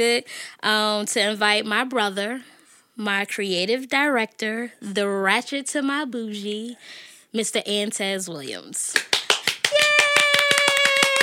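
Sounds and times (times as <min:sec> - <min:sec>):
speech: 0:00.0 - 0:09.2
single person clapping: 0:09.0 - 0:11.2.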